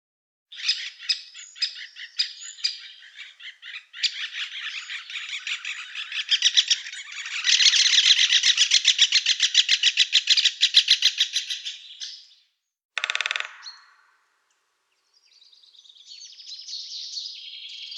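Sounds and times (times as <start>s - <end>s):
woodpecker giving harsh raspy calls: 0.5s - 12.0s.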